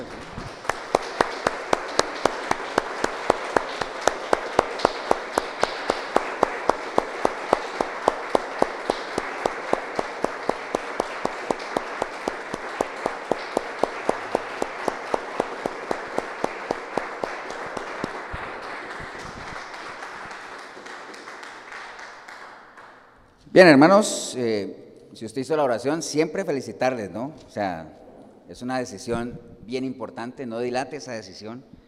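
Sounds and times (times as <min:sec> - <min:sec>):
audience applause: 0:00.0 - 0:23.0
speech: 0:23.6 - 0:31.8.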